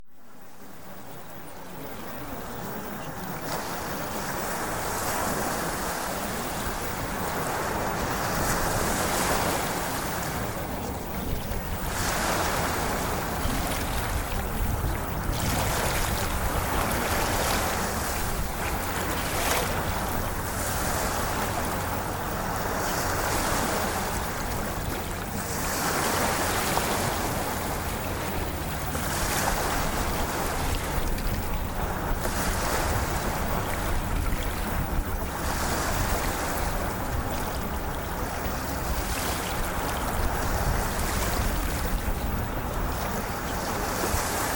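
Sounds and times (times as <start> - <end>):
ocean waves: 0.0 - 44.5.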